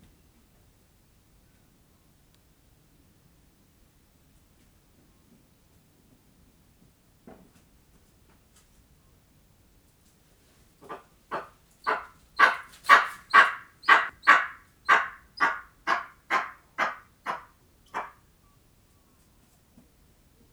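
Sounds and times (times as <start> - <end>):
eastern imperial eagles calling in nature at Gores farm: 10.8 - 18.2.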